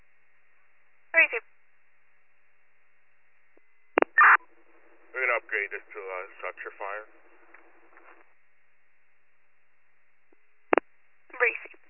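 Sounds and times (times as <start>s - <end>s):
faint steady hum: 0.0s - 11.8s
radio voice: 5.2s - 7.1s
speech: 5.6s - 7.2s.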